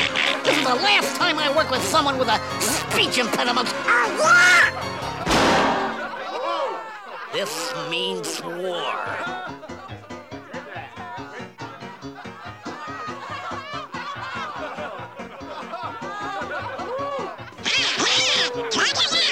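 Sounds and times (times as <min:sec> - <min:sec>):
laughter: 0:00.0 - 0:01.7, 0:03.4 - 0:19.2
speech: 0:00.7 - 0:04.9, 0:07.3 - 0:09.7
voice imitating duck quacking: 0:17.6 - 0:19.2.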